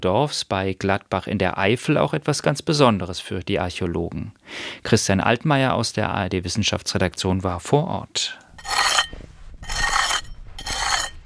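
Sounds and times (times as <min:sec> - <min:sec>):
speech: 0:00.0 - 0:09.8
trowel scraping soil walls of an excavation pit: 0:08.6 - 0:11.2.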